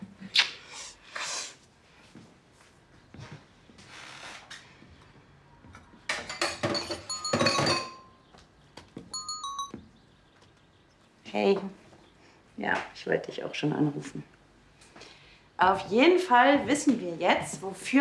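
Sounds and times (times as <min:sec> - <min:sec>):
ceramic cups and dishes clinking: 0:06.2 - 0:08.2, 0:09.2 - 0:09.8
speech: 0:11.4 - 0:11.8, 0:12.6 - 0:14.3, 0:15.6 - 0:17.9.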